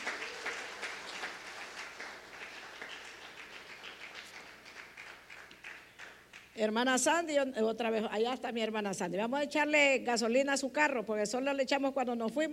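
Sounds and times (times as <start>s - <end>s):
audience applauding: 0.0s - 6.6s
speech: 6.6s - 12.5s.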